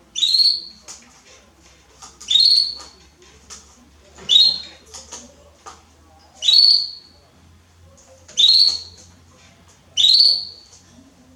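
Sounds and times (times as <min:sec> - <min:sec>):
Belgian canary calls: 0:00.2 - 0:00.8, 0:02.2 - 0:03.0, 0:04.3 - 0:04.8, 0:06.4 - 0:07.1, 0:08.4 - 0:09.0, 0:10.0 - 0:10.7.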